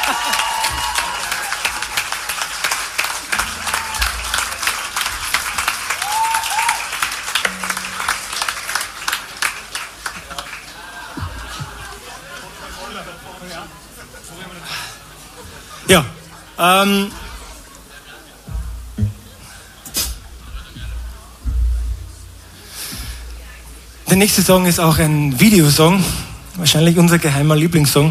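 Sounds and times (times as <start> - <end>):
laughter: 0.0 - 2.0, 8.8 - 19.8
audience applause: 0.0 - 13.9
speech: 15.9 - 17.2, 24.2 - 28.1.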